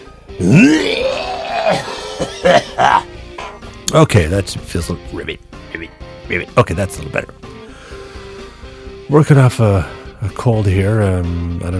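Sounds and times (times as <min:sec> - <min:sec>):
speech: 0:00.3 - 0:00.8, 0:03.9 - 0:05.5, 0:06.3 - 0:07.5, 0:09.1 - 0:11.7
man clearing throat: 0:00.4 - 0:03.6.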